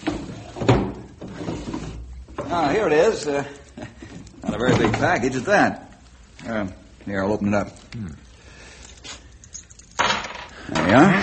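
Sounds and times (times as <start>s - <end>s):
desk drawer bumps and knocks: 0.0s - 1.7s
speech: 2.5s - 3.6s, 4.5s - 8.2s, 10.9s - 11.2s.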